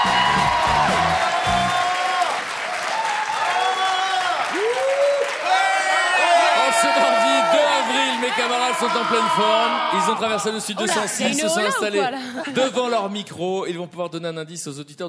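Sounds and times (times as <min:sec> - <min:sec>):
studio audience clapping: 0:00.0 - 0:10.1
studio audience whoops and shouts: 0:00.0 - 0:10.2
speech: 0:08.8 - 0:15.0.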